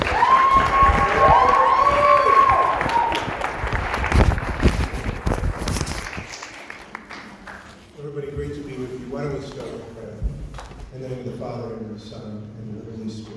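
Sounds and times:
university audience applause welcoming a monsignor: 0.0 - 7.9
crowd noise: 0.0 - 13.3.

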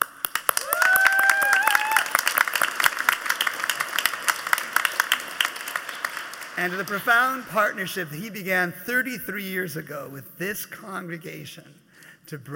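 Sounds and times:
congregation applauding to welcome a visiting reverend: 0.0 - 8.2
speech: 6.6 - 12.5.

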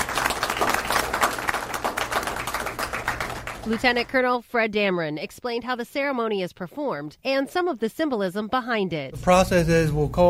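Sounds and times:
crowd applause: 0.0 - 4.1
speech: 3.7 - 10.2.

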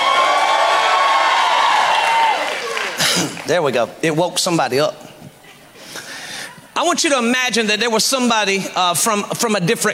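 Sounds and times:
audience shouting: 0.0 - 3.0
audience clapping: 0.0 - 3.7
speech: 3.5 - 5.1, 6.8 - 9.9.

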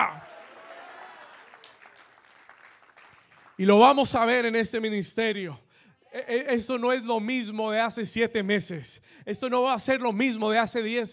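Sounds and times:
speech: 0.0 - 0.3, 3.6 - 11.1
audience applauding loudly: 0.0 - 3.7.

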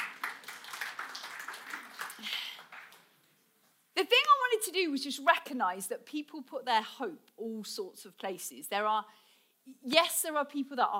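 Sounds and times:
small group clapping: 0.0 - 3.4
speech: 4.8 - 10.9.

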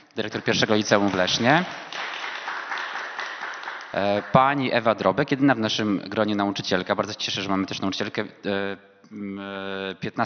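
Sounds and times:
speech: 0.2 - 2.2, 3.9 - 10.2
audience applause: 0.3 - 4.8.

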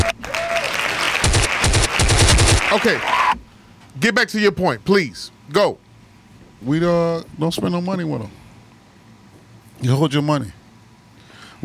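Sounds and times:
hand claps: 0.0 - 3.2
speech: 2.8 - 3.2, 4.0 - 5.8, 6.6 - 8.4, 9.8 - 10.6.

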